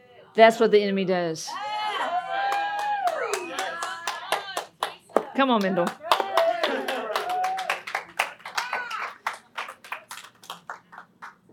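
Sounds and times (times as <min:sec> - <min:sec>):
speech: 0:00.4 - 0:01.7, 0:05.4 - 0:06.0
golf clap, quiet polite clapping: 0:02.4 - 0:11.5.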